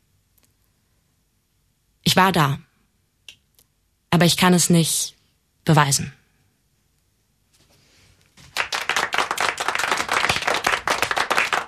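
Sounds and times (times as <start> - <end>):
speech: 2.2 - 2.6, 4.1 - 6.2
clapping in the studio: 8.4 - 11.6.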